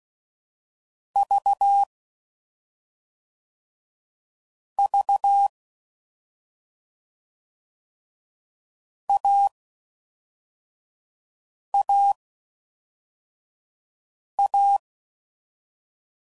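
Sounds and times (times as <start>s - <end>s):
CW Morse code groups at 5 WPM: 1.2s - 1.9s, 4.8s - 5.5s, 9.1s - 9.5s, 11.8s - 12.2s, 14.4s - 14.8s.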